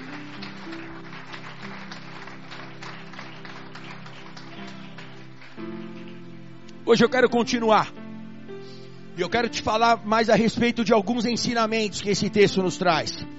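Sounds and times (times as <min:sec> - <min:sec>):
audience applause: 0:00.0 - 0:06.4
speech: 0:06.9 - 0:08.0, 0:09.2 - 0:13.3.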